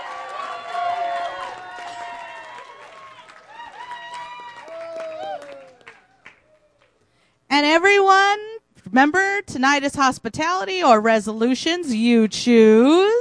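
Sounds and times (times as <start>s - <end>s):
audience applause: 0.0s - 6.9s
speech: 8.9s - 13.2s.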